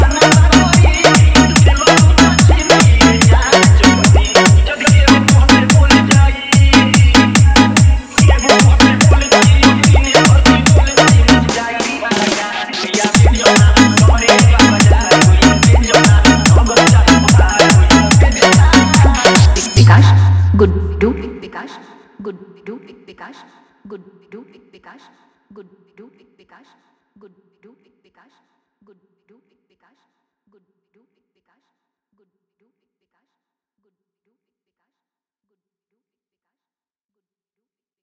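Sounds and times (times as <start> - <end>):
Bhojpuri remix song: 0.0 - 21.8.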